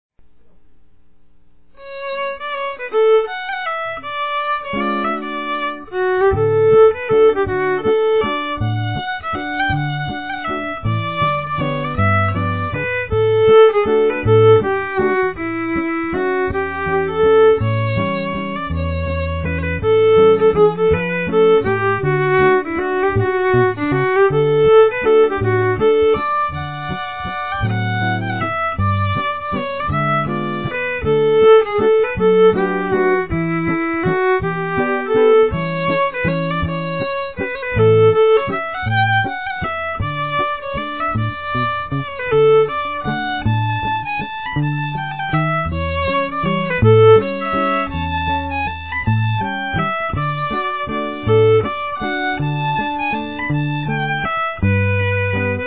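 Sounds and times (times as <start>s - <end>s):
fiddle waltz in D: 1.8s - 55.6s.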